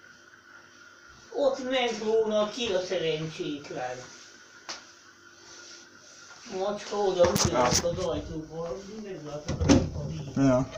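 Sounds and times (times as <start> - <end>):
soft hum: 0.0 - 10.7
speech: 1.4 - 4.2, 6.5 - 10.7
door being shut: 9.5 - 10.1.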